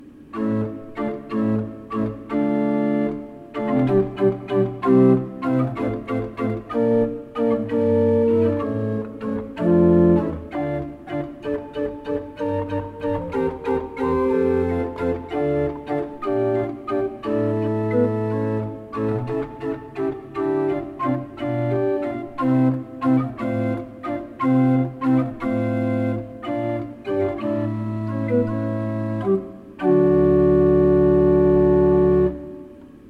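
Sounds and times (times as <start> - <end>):
pipe organs: 0.0 - 33.0.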